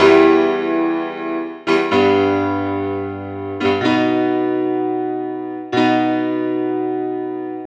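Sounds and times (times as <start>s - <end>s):
disco fever piano lick: 0.0s - 7.6s.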